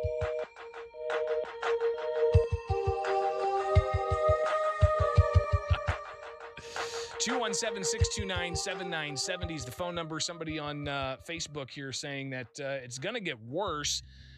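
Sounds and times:
upbeat synthesized on-hold music from a customer service line: 0:00.0 - 0:11.5
speech: 0:07.2 - 0:14.3.

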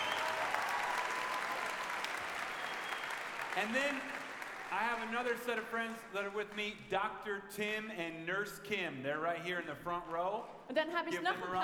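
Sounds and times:
audience applause: 0:00.0 - 0:06.8
speech: 0:03.6 - 0:11.6.

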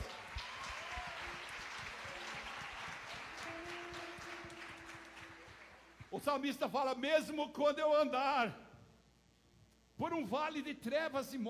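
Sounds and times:
audience applause: 0:00.0 - 0:06.2
speech: 0:06.1 - 0:08.6, 0:10.0 - 0:11.4.

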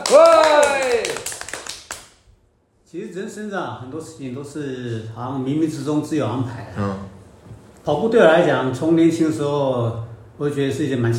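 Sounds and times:
audience applause: 0:00.0 - 0:02.0
speech: 0:02.9 - 0:07.0, 0:07.9 - 0:11.1.

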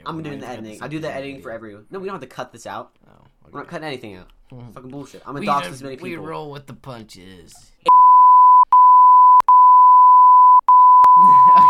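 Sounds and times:
speech: 0:00.0 - 0:07.7
censor bleep: 0:07.9 - 0:11.6
laughter: 0:11.2 - 0:11.6.

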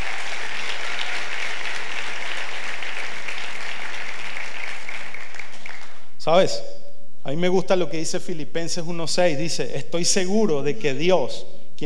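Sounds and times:
audience applause: 0:00.0 - 0:06.0
speech: 0:06.3 - 0:11.8.

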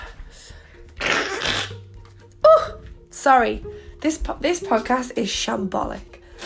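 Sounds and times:
person blowing nose: 0:01.0 - 0:01.9
speech: 0:03.2 - 0:06.2.

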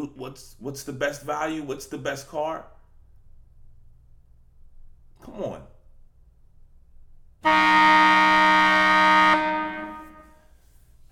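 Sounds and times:
speech: 0:00.0 - 0:02.8, 0:05.2 - 0:05.7, 0:07.4 - 0:09.2
halftime horn: 0:07.4 - 0:10.6.

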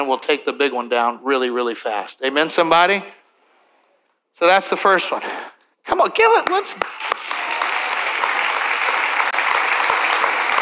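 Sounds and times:
speech: 0:00.0 - 0:03.2, 0:04.4 - 0:07.1
sparse audience clapping: 0:06.3 - 0:10.6.

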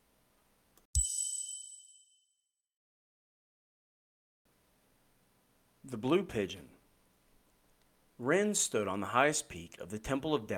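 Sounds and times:
chimes: 0:01.0 - 0:02.4
speech: 0:05.9 - 0:06.8, 0:08.2 - 0:10.5.

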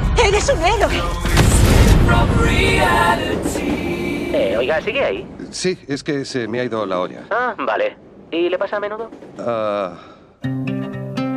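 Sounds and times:
explosion sound effect: 0:00.0 - 0:05.9, 0:07.9 - 0:10.1
speech: 0:00.4 - 0:01.4, 0:02.1 - 0:10.6.

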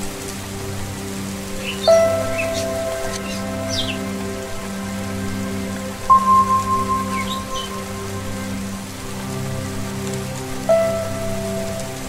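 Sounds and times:
steady rain: 0:00.0 - 0:12.0
faint birds chirping: 0:01.6 - 0:04.2, 0:06.1 - 0:08.1.

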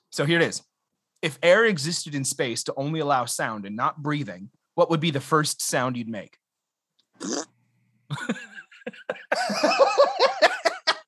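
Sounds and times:
speech: 0:00.1 - 0:06.4, 0:07.2 - 0:07.5, 0:08.1 - 0:10.3
mouth imitation of a fart: 0:07.2 - 0:07.6
laughter: 0:08.1 - 0:11.0.

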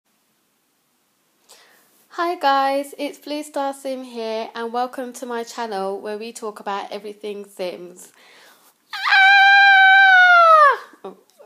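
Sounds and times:
speech: 0:02.2 - 0:08.4, 0:11.0 - 0:11.3
excited high-pitched scream: 0:08.9 - 0:11.0.

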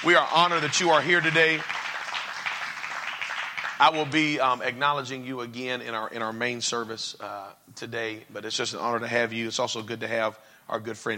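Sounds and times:
speech: 0:00.0 - 0:01.9, 0:03.8 - 0:11.1
crowd round of applause: 0:00.0 - 0:04.3.

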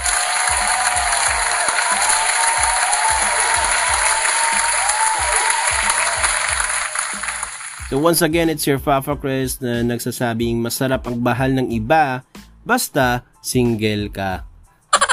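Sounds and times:
audience applause: 0:00.0 - 0:07.9
speech: 0:07.9 - 0:14.5.

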